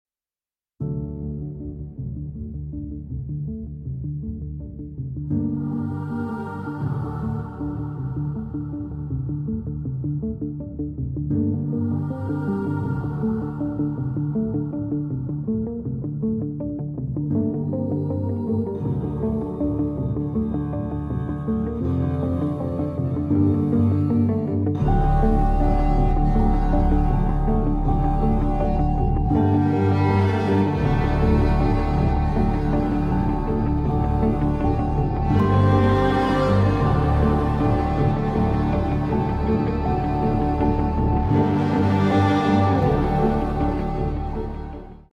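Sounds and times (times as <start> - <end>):
instrumental music: 0.8 - 45.1.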